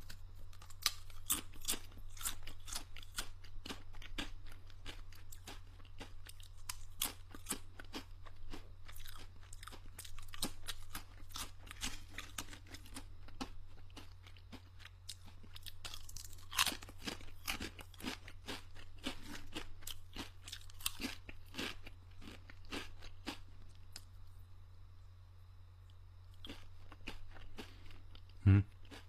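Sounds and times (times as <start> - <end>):
crunchy snack chewing: 0.0 - 24.3, 25.9 - 29.0
low steady hum: 0.0 - 29.0.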